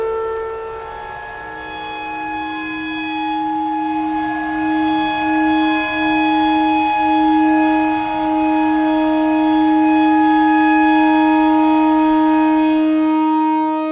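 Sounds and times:
clarinet notes: 0.0 - 13.8
noise: 0.0 - 13.8
tornado siren: 0.0 - 13.8.

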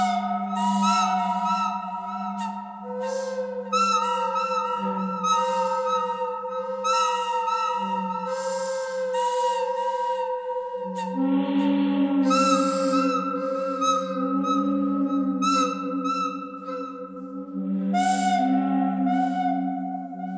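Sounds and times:
pentatonic melody: 0.0 - 20.2.

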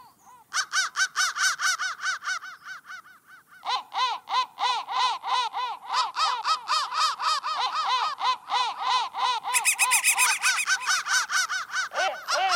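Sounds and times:
crow calling: 0.1 - 12.5.

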